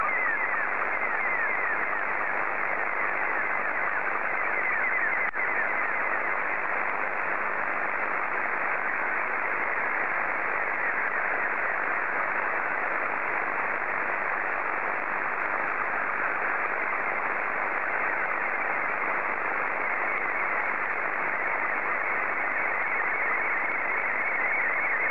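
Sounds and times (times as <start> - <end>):
SSTV Scottie 2 signal: 0.0 - 25.1.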